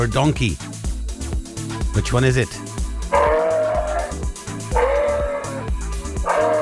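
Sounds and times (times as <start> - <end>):
speech: 0.0 - 0.8, 2.0 - 3.2
moose call: 3.1 - 6.6.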